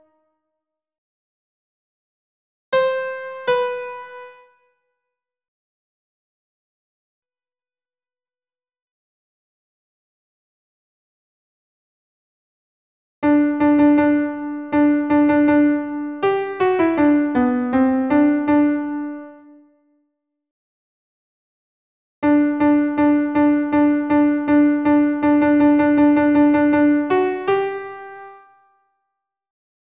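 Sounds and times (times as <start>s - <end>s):
solo alto piano: 2.8s - 4.5s, 13.2s - 19.6s, 22.2s - 28.6s.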